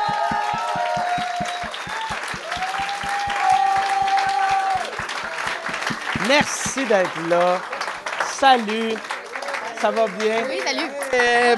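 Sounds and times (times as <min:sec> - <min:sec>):
sustained whoops: 0:00.0 - 0:06.0
fast regular low thumping beat: 0:00.0 - 0:07.4
live audience applauding and cheering: 0:00.0 - 0:11.5
speech: 0:06.3 - 0:07.7, 0:08.4 - 0:09.1, 0:09.8 - 0:11.5.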